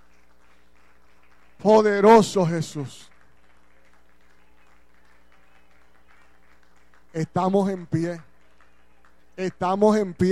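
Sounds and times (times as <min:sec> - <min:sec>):
audience applauding: 0:00.0 - 0:10.3
speech: 0:01.6 - 0:03.1, 0:07.2 - 0:08.3, 0:09.4 - 0:10.3.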